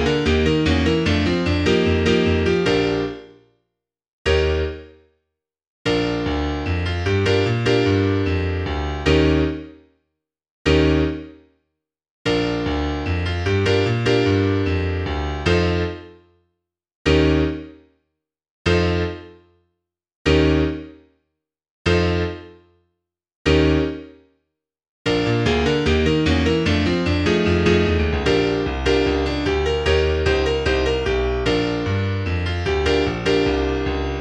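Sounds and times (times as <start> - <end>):
piano: 0.0 - 3.5, 4.3 - 5.1, 5.8 - 9.9, 10.7 - 11.5, 12.2 - 16.4, 17.1 - 17.9, 18.7 - 19.6, 20.3 - 21.1, 21.9 - 22.8, 23.5 - 24.3, 25.1 - 34.1.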